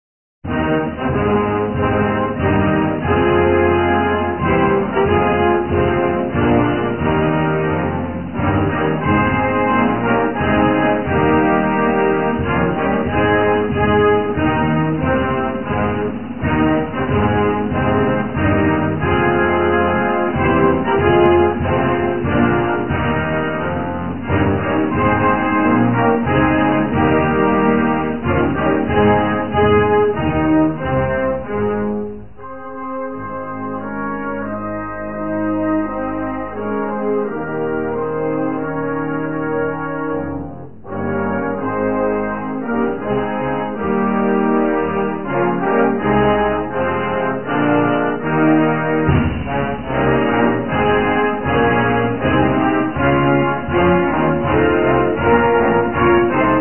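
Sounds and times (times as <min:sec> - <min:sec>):
instrumental national anthem: 0:00.4 - 0:56.5.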